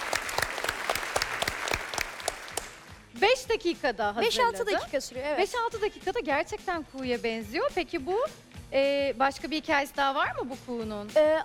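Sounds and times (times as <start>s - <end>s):
audience applause: 0.0s - 2.9s
speech: 3.5s - 11.4s.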